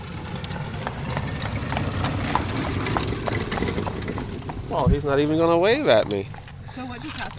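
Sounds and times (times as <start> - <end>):
horse and buggy passing on road: 0.0 - 7.3
speech: 4.8 - 7.3.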